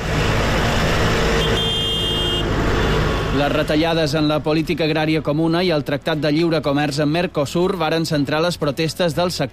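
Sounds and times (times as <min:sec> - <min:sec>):
tractor engines on roads rumbling: 0:00.0 - 0:09.5
horn honking: 0:01.2 - 0:03.6
speech: 0:03.4 - 0:09.5.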